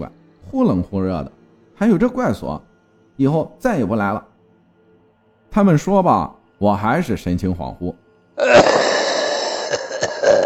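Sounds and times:
speech: 0:00.0 - 0:04.3, 0:05.5 - 0:08.9
cough: 0:08.4 - 0:10.4.

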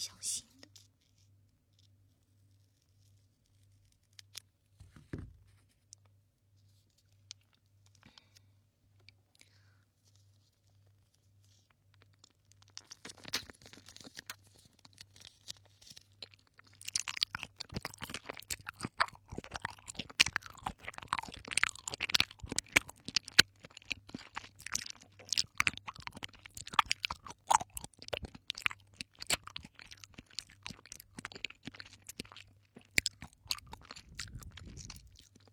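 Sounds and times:
chewing jelly: 0:06.9 - 0:35.5.

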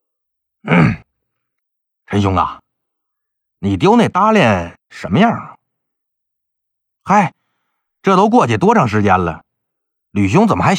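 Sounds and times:
speech: 0:00.6 - 0:01.0, 0:02.2 - 0:02.6, 0:03.6 - 0:05.6, 0:07.1 - 0:07.4, 0:08.0 - 0:09.4, 0:10.1 - 0:10.7
throat clearing: 0:00.6 - 0:01.1.

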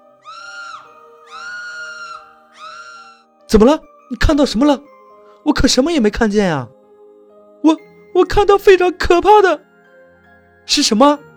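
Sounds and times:
shrill, near-frantic scream: 0:00.2 - 0:03.2
speech: 0:03.5 - 0:06.8, 0:07.6 - 0:09.7, 0:10.7 - 0:11.3.

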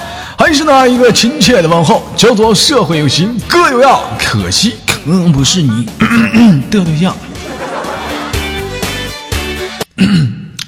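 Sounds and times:
speech: 0:00.5 - 0:07.4, 0:10.0 - 0:10.3
throat clearing from irritation after eating instant noodles: 0:06.0 - 0:06.6, 0:09.9 - 0:10.6
laughter: 0:07.2 - 0:09.0.

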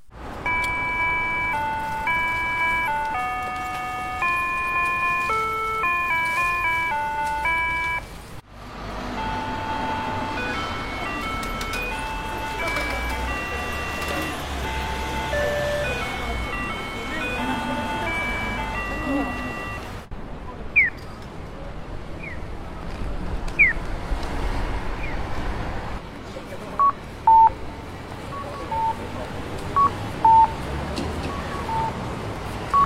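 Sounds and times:
street noise: 0:00.0 - 0:32.8
traffic rumble: 0:00.0 - 0:32.8
Japanese pedestrian crossing audible signal melody: 0:00.4 - 0:08.2, 0:08.9 - 0:20.1, 0:31.3 - 0:32.0.

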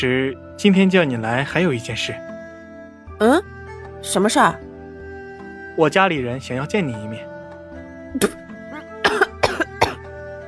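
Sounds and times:
speech: 0:00.0 - 0:02.3, 0:03.2 - 0:04.7, 0:05.8 - 0:07.3, 0:08.1 - 0:08.4
spitting out tea: 0:08.2 - 0:09.3
choking coughs: 0:08.2 - 0:10.0.

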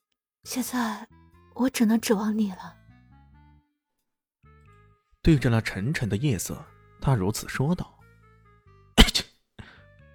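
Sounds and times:
speech: 0:00.4 - 0:02.8, 0:05.2 - 0:08.0
person sneezing: 0:09.0 - 0:09.3.

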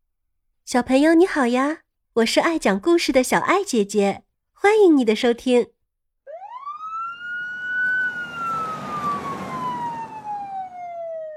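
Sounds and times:
speech: 0:00.7 - 0:05.8
police car siren passing by: 0:06.3 - 0:11.3.

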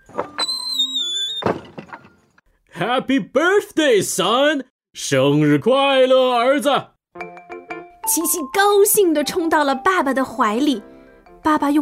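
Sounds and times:
door opening: 0:00.0 - 0:02.4
speech: 0:02.8 - 0:06.9, 0:08.1 - 0:11.8.

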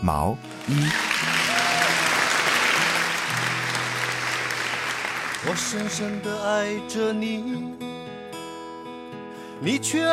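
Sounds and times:
speech: 0:00.0 - 0:01.4, 0:05.4 - 0:08.1, 0:09.6 - 0:10.1
audience applause: 0:00.4 - 0:06.5.

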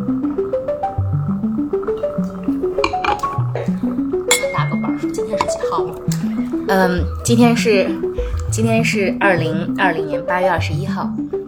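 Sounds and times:
bubbly liquid gurgling: 0:00.0 - 0:07.2
glasses clinking together in a toast: 0:02.1 - 0:06.5
speech: 0:06.7 - 0:11.2.

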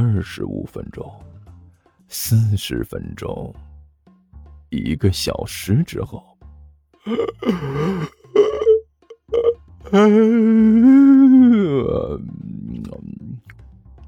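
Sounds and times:
speech: 0:00.0 - 0:01.4, 0:02.1 - 0:03.7, 0:04.7 - 0:06.3, 0:07.0 - 0:08.2, 0:09.9 - 0:13.0
big yawn: 0:07.1 - 0:12.2.

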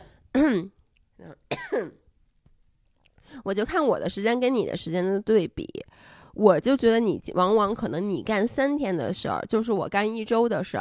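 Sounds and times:
person coughing: 0:00.4 - 0:02.0
speech: 0:00.5 - 0:02.0, 0:03.3 - 0:10.7.

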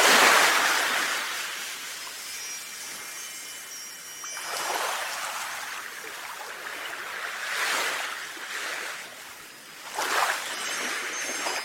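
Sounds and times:
seaside wind chimes ringing: 0:00.0 - 0:08.3, 0:08.9 - 0:11.6
seaside waves washing in and out: 0:00.0 - 0:11.6.

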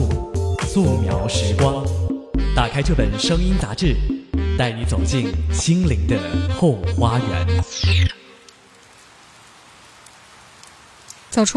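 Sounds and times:
speech: 0:00.8 - 0:02.0, 0:02.6 - 0:08.2, 0:11.3 - 0:11.5
rain falling: 0:08.1 - 0:11.5.

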